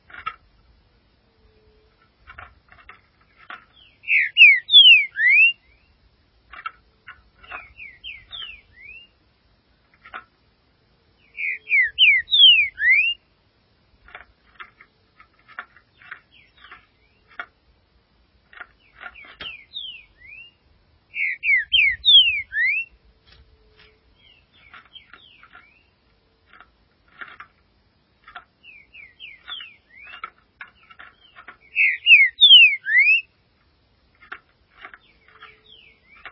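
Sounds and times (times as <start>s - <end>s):
green-winged saltator whistled song: 4.1s - 5.6s, 11.4s - 13.2s, 19.8s - 22.9s, 31.7s - 33.3s.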